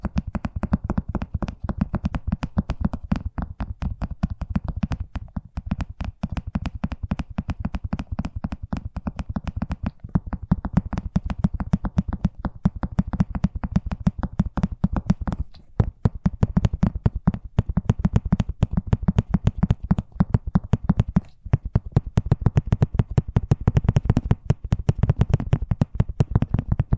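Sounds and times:
fast tapping: 0:00.0 - 0:26.9.

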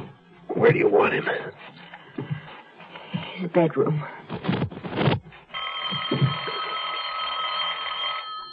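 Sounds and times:
speech: 0:00.6 - 0:01.7, 0:03.4 - 0:04.2
telephone ringing: 0:05.5 - 0:08.5.

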